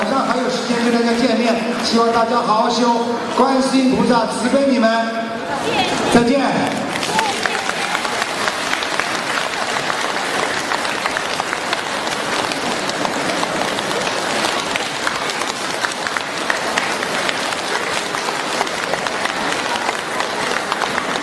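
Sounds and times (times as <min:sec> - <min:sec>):
audience applause: 0:00.0 - 0:03.6, 0:05.6 - 0:21.2
speech: 0:01.8 - 0:07.2.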